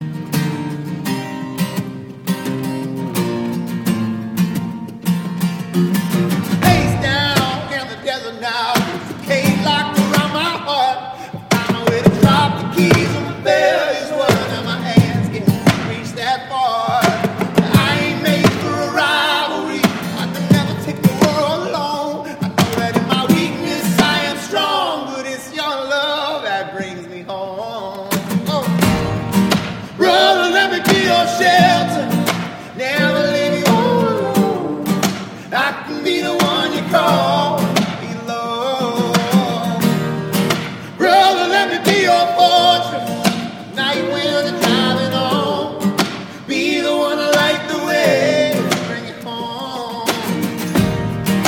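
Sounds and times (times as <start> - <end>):
live acoustic music: 0.0 - 51.4.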